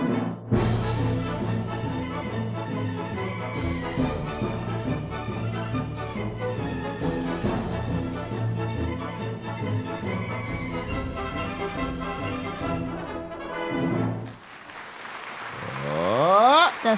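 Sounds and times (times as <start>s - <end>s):
loud orchestral music: 0.0s - 14.3s
audience clapping and cheering: 14.2s - 16.9s.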